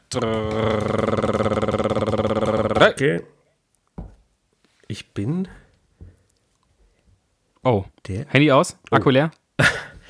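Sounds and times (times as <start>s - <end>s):
voice imitating a drumroll: 0.0s - 3.2s
speech: 0.1s - 1.4s, 2.3s - 3.4s, 4.9s - 5.6s, 7.6s - 9.8s.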